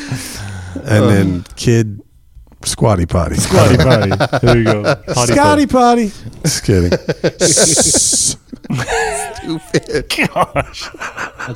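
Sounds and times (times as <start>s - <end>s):
speech: 0.1s - 2.0s, 2.6s - 11.5s
laughter: 3.4s - 5.5s, 6.4s - 11.5s
voice imitating escaping steam hiss: 7.4s - 8.4s.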